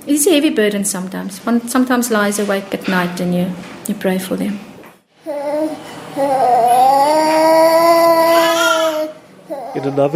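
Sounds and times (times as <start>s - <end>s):
speech: 0.0s - 4.7s, 5.3s - 7.6s, 9.8s - 10.1s
six-month-old infant moaning: 5.2s - 10.1s.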